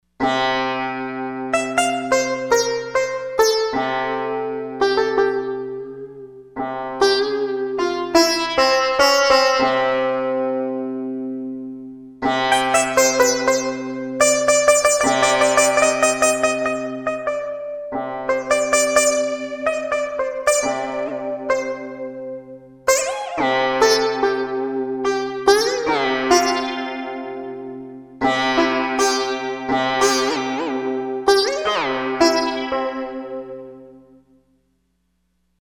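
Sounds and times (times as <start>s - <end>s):
sitar: 0.2s - 34.3s.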